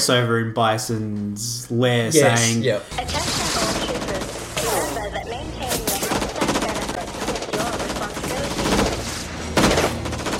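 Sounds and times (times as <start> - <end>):
speech: 0.0 - 3.4
machine-gun fire from the film Street Fighter: 2.9 - 10.3.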